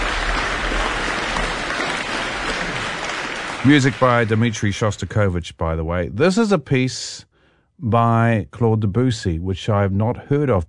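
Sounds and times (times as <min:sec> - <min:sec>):
audience applause after concert: 0:00.0 - 0:05.0
speech: 0:03.6 - 0:10.6.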